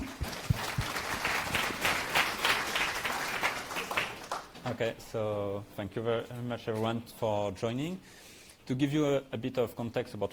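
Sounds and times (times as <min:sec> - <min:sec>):
audience applause: 0:00.0 - 0:04.6
speech: 0:04.7 - 0:10.3.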